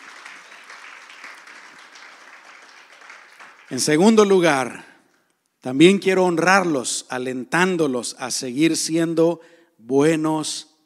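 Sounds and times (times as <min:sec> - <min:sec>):
audience applauding: 0:00.0 - 0:04.4
speech: 0:03.7 - 0:04.9, 0:05.6 - 0:10.7.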